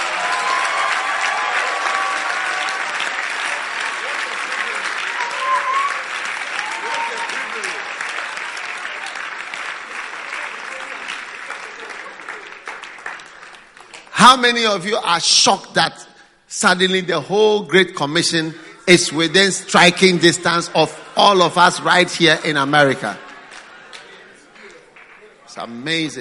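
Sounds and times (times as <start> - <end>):
audience clapping: 0.0 - 15.0, 21.3 - 25.8
speech: 14.2 - 23.2, 25.6 - 26.2.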